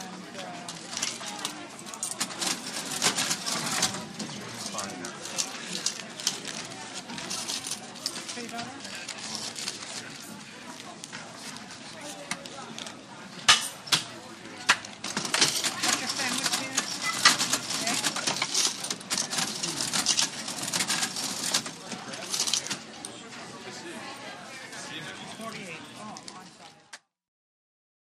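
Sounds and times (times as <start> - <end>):
college cafeteria background: 0.0 - 27.1
manual cash register: 0.7 - 10.2, 15.0 - 23.0.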